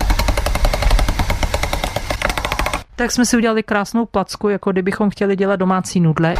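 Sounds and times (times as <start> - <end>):
pasta machine rolling polymer clay: 0.0 - 2.9
speech: 3.0 - 6.3.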